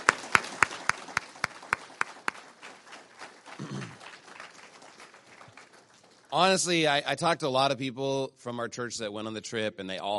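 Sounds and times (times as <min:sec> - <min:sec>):
audience applause: 0:00.0 - 0:07.0
speech: 0:06.3 - 0:10.1.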